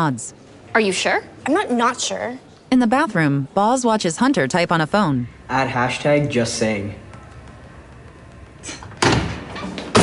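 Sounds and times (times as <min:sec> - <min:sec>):
speech: 0:00.0 - 0:07.0, 0:08.6 - 0:08.9
body crashing against a bathroom stall door: 0:08.9 - 0:10.0.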